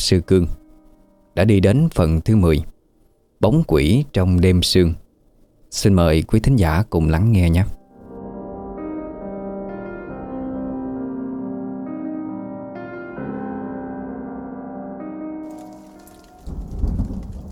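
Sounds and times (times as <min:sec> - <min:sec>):
speech: 0:00.0 - 0:00.6, 0:01.4 - 0:02.7, 0:03.4 - 0:05.0, 0:05.7 - 0:07.8
rain pattering onto a porch: 0:15.5 - 0:17.4.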